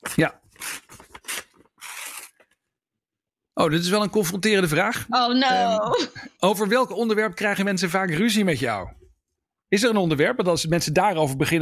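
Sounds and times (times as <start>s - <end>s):
numbered paper envelope being opened: 0.0s - 2.6s
speech: 0.2s - 0.4s, 3.6s - 9.0s, 9.7s - 11.5s.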